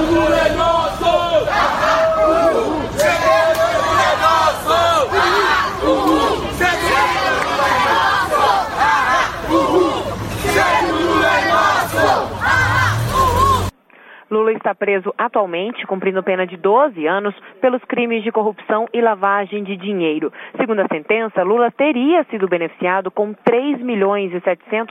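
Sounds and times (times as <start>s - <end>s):
protesters chanting slogans: 0.0s - 13.7s
speech: 14.3s - 24.8s.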